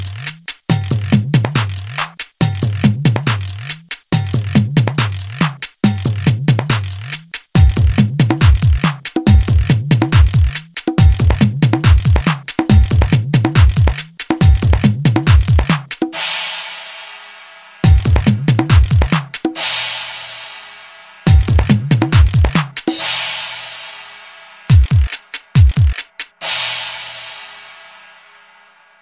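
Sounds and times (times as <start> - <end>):
tabla beat: 0.1 - 16.1, 17.8 - 19.6, 21.3 - 26.5.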